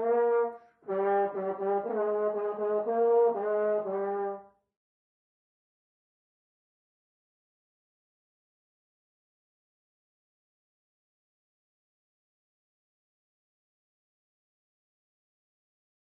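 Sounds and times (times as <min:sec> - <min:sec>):
horn: 0:00.0 - 0:04.6.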